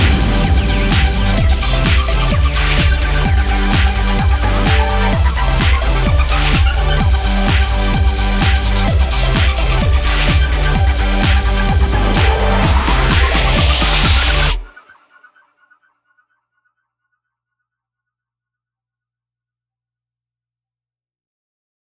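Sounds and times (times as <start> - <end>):
karaoke singing: 0.0 - 14.7.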